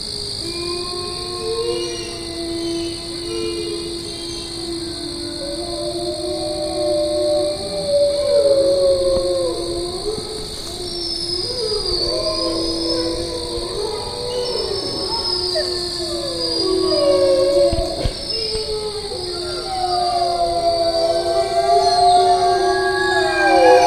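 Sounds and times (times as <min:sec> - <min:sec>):
group of wolves howling: 0:00.0 - 0:23.8.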